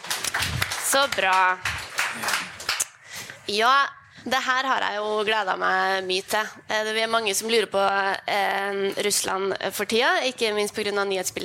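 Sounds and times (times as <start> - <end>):
audience applause: 0.0 - 2.8
speech: 0.9 - 2.6, 3.5 - 11.4.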